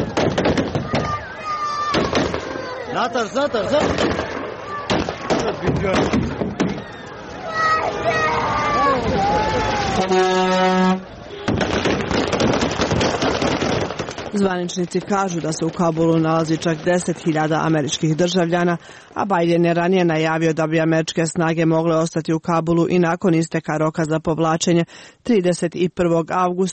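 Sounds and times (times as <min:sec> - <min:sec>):
gunfire at Kabul airport: 0:00.0 - 0:01.2, 0:01.9 - 0:02.6, 0:03.7 - 0:06.8, 0:11.5 - 0:17.4
panicked crowd shouting: 0:00.0 - 0:11.8
speech: 0:03.0 - 0:04.3, 0:05.6 - 0:06.2, 0:10.0 - 0:11.0, 0:14.4 - 0:26.7.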